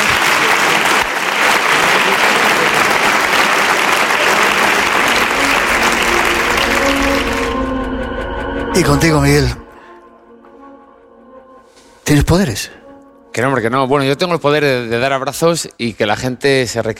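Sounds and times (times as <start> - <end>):
audience applause: 0.0 - 7.8
speech: 8.8 - 9.6, 12.1 - 12.8, 13.4 - 16.9.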